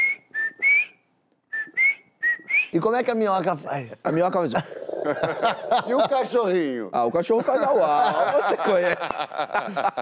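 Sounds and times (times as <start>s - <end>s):
person whistling an imitation of a sabiá thrush song: 0.0s - 2.7s
speech: 2.7s - 10.0s
laughter: 4.6s - 6.5s, 7.2s - 10.0s.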